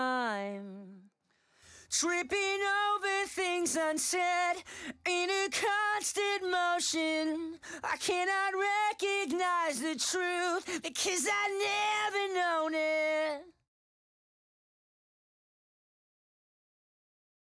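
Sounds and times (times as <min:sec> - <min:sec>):
main vocals: 0:00.0 - 0:13.6.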